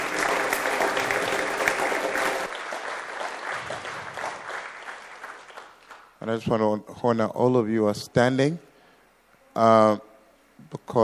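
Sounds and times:
crowd clapping: 0:00.0 - 0:06.2
speech: 0:06.3 - 0:08.7, 0:09.6 - 0:11.0.

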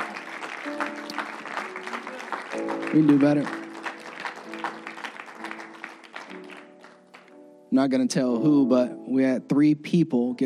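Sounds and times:
audience clapping hands: 0:00.0 - 0:07.4
speech: 0:02.6 - 0:03.6, 0:07.8 - 0:10.4.

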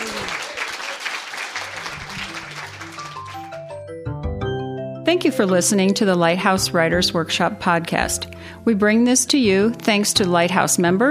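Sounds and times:
audience applause: 0:00.0 - 0:03.8
speech: 0:05.1 - 0:11.0.

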